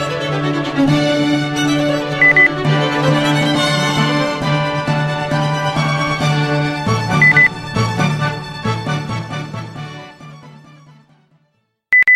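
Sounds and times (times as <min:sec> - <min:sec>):
classical orchestral overture: 0:00.0 - 0:11.3
electronic beep: 0:02.2 - 0:02.5, 0:07.2 - 0:07.5.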